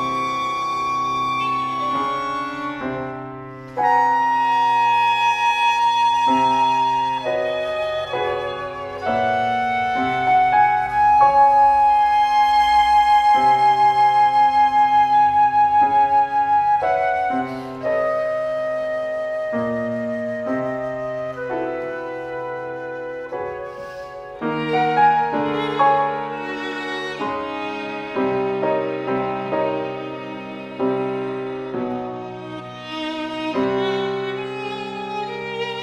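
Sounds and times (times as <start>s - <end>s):
flute: 0.0s - 35.8s
piano: 0.0s - 35.8s
violin: 0.0s - 35.8s.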